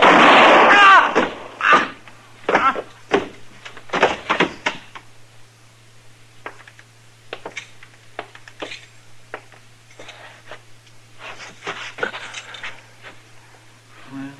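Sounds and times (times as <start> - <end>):
gunshot in a western radio drama: 0.0 - 1.6.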